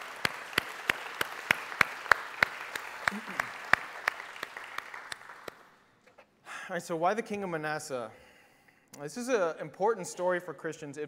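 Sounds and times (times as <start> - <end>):
audience applauding: 0.0 - 5.8
speech: 3.1 - 3.6, 6.7 - 8.2, 9.0 - 11.0.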